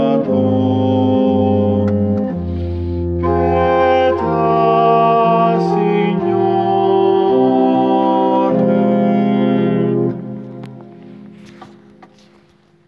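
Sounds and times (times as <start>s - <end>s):
soprano singing: 0.0s - 2.4s, 3.2s - 10.6s.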